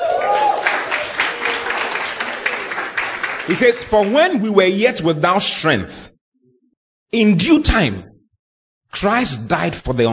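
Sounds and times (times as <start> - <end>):
audience clapping: 0.0 - 4.6
speech: 3.5 - 6.1, 7.1 - 8.1, 8.9 - 10.1.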